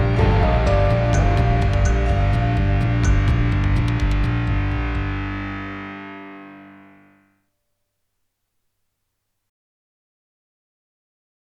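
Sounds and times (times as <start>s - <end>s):
tension music: 0.0s - 7.2s.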